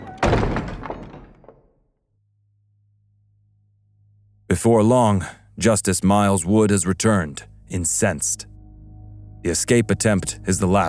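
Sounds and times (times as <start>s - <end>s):
stockade door slammed shut: 0.0s - 1.8s
speech: 4.6s - 8.5s, 9.4s - 10.8s.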